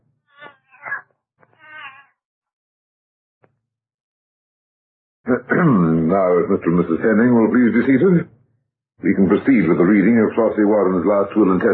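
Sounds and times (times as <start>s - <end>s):
cat meowing: 0.4s - 2.1s
speech: 5.3s - 8.3s, 9.0s - 11.7s.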